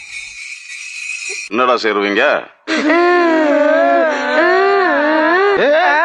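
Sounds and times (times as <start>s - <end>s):
speech: 1.5s - 3.8s
children crying: 2.7s - 6.0s.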